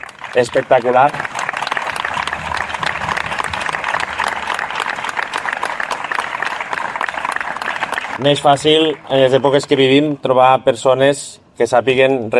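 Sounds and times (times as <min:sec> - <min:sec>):
audience applause: 0:00.0 - 0:09.9
speech: 0:00.4 - 0:01.3, 0:08.2 - 0:12.3.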